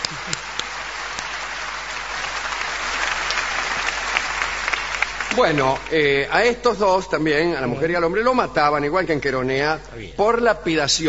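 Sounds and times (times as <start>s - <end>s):
applause: 0.0s - 6.2s
speech: 5.4s - 11.0s.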